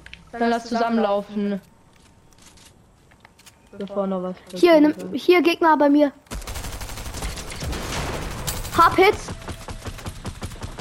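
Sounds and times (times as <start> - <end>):
speech: 0.3 - 1.7, 3.7 - 6.2, 8.8 - 9.3
rapid continuous video game gunfire: 6.3 - 10.8.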